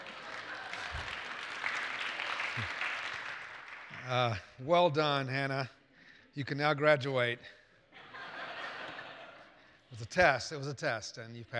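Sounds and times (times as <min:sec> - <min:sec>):
audience applause: 0:00.0 - 0:04.4
speech: 0:04.1 - 0:05.8, 0:06.4 - 0:07.6, 0:09.9 - 0:11.5
laughter: 0:07.9 - 0:10.6.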